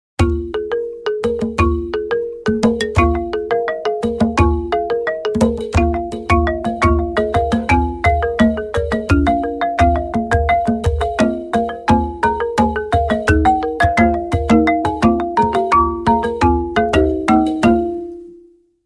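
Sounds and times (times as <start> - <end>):
Tay Nguyen instrumental ensemble music: 0.2 - 18.3.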